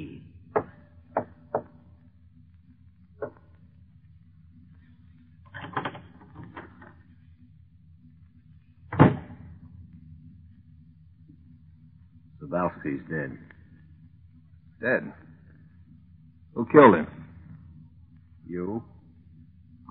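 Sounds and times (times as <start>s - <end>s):
low steady hum: 0.0s - 19.9s
door opening: 5.5s - 7.0s
speech: 12.7s - 13.6s, 14.8s - 15.3s, 16.6s - 17.2s.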